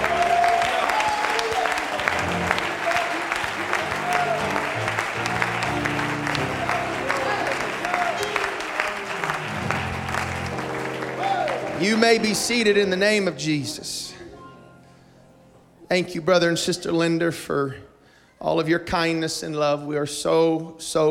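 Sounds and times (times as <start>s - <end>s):
audience clapping hands: 0.0s - 13.3s
speech: 12.0s - 14.2s, 15.9s - 21.0s.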